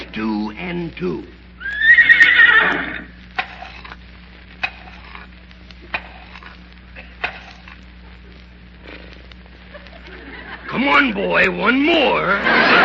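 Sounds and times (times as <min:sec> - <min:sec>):
speech: 0:00.2 - 0:01.4, 0:11.0 - 0:12.8
horse whinnying: 0:01.6 - 0:03.1
laughter: 0:09.6 - 0:11.0, 0:11.9 - 0:12.8.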